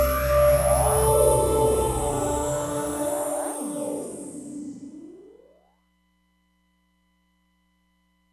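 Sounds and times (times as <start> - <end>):
Roland DEP-5 regeneration reverse panning effect: 0.0 - 5.5.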